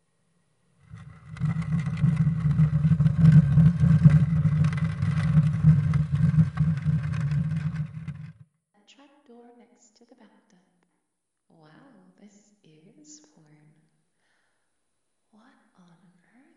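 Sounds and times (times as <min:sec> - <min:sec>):
old machinery inside a mermaid statue in a video game: 0:00.8 - 0:08.4.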